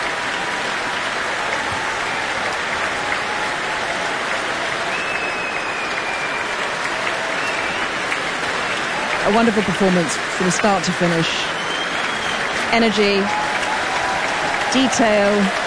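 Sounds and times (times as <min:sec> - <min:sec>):
concert audience applauding: 0:00.0 - 0:15.6
whoops and whistles: 0:04.8 - 0:08.2, 0:11.5 - 0:14.6
speech: 0:09.3 - 0:11.6, 0:12.7 - 0:13.4, 0:14.7 - 0:15.6.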